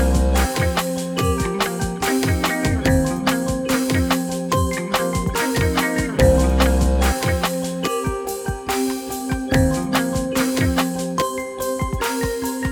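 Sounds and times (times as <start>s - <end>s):
menu music: 0.0s - 12.7s.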